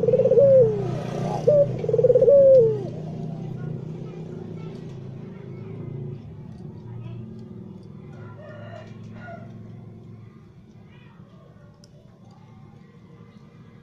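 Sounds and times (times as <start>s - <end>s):
white Barbary dove cooing: 0.0s - 3.8s.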